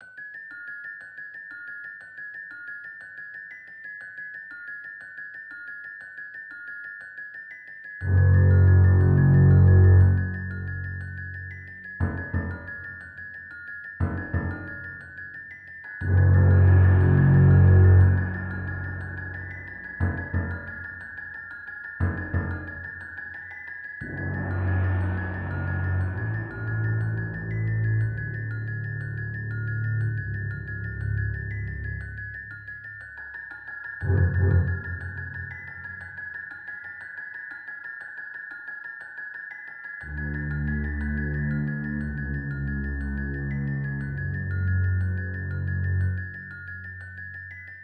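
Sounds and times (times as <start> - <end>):
background music for a terrifying night in a sea of trees: 8.0 - 47.8.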